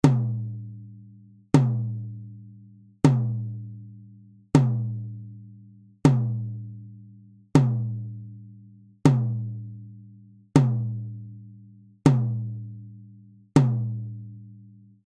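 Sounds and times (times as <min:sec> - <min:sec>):
tom drum: 0:00.0 - 0:00.5, 0:01.6 - 0:02.0, 0:03.0 - 0:03.6, 0:04.6 - 0:05.0, 0:06.1 - 0:06.6, 0:07.6 - 0:08.0, 0:09.1 - 0:09.6, 0:10.6 - 0:11.1, 0:12.1 - 0:12.6, 0:13.6 - 0:14.0.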